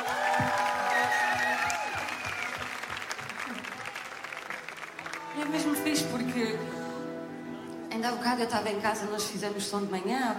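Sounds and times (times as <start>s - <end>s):
people cheering: 0.0s - 6.0s
live audience applause: 0.0s - 6.3s
speech: 6.0s - 6.8s, 8.0s - 10.3s.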